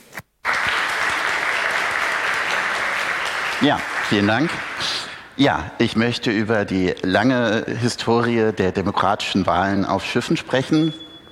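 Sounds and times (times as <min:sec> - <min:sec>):
audience applause for the speaker: 0:00.4 - 0:05.3
speech: 0:03.6 - 0:11.0.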